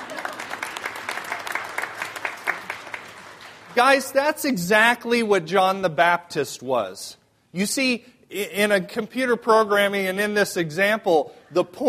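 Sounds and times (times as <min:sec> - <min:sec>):
round of applause: 0:00.0 - 0:03.8
speech: 0:03.8 - 0:11.8.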